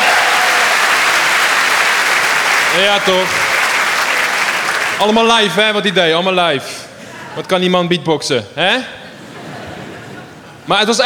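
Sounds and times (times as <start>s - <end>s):
crowd at a live show applauding a DJ: 0.0s - 5.5s
speech: 2.8s - 3.4s, 5.0s - 6.8s, 7.4s - 9.0s, 10.7s - 11.0s
laughter: 9.0s - 10.7s.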